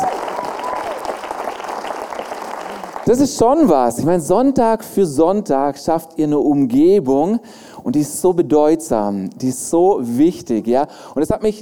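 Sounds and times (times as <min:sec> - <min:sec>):
scattered crowd cheering: 0:00.0 - 0:03.2
crowd applauding: 0:00.0 - 0:03.8
speech: 0:03.1 - 0:11.6.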